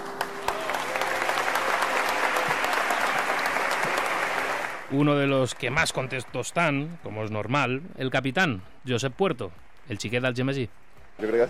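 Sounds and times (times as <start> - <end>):
applause inside a basilica: 0.0 - 7.5
speech: 4.9 - 11.4.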